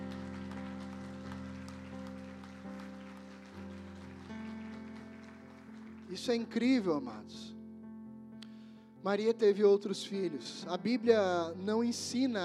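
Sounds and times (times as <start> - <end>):
audience applause: 0.0 - 6.6
speech: 6.1 - 7.5, 9.0 - 12.4.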